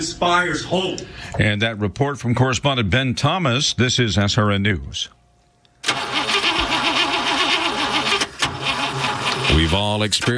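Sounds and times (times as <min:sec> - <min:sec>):
speech: 0:00.0 - 0:05.2, 0:09.6 - 0:10.3
car engine cranking, failing to start: 0:05.8 - 0:10.0.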